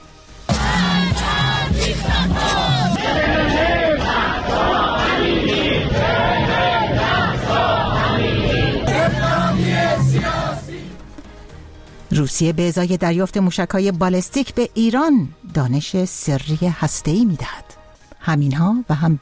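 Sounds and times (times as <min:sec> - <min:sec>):
protest crowd chanting slogans: 0:00.5 - 0:11.1
speech: 0:12.2 - 0:19.1.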